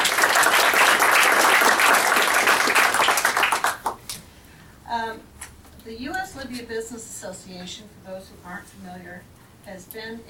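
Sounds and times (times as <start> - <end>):
audience applause: 0.0 - 4.0
speech: 6.5 - 10.2.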